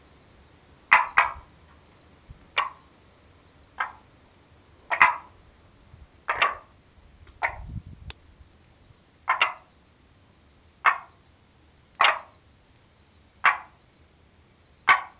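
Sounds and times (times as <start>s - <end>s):
frog giving short sharp knocking clucks: 0.9s - 1.5s, 2.5s - 2.8s, 3.8s - 4.1s, 4.9s - 5.3s, 6.3s - 6.7s, 7.3s - 7.7s, 9.3s - 9.7s, 10.8s - 11.2s, 12.0s - 12.4s, 13.4s - 13.8s, 14.9s - 15.1s.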